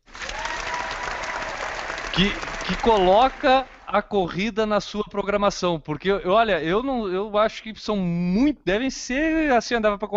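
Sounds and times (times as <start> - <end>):
audience applause: 0.0 - 4.3
speech: 2.2 - 10.1.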